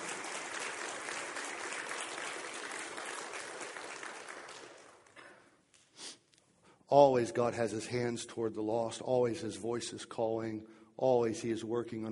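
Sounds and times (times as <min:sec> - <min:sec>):
audience applauding: 0:00.0 - 0:05.1
speech: 0:06.9 - 0:12.1.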